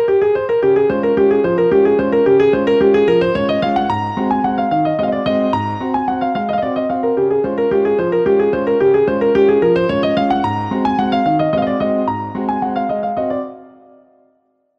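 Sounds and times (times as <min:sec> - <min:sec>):
acoustic piano playing: 0:00.0 - 0:14.3.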